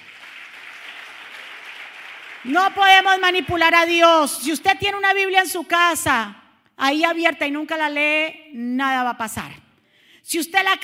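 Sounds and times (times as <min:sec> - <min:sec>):
audience applause: 0:00.0 - 0:02.6
speech: 0:02.4 - 0:09.6, 0:10.2 - 0:10.8.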